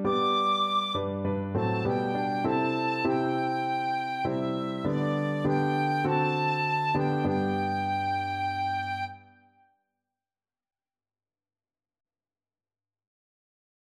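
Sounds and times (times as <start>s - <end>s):
tin whistle: 0.1s - 9.4s.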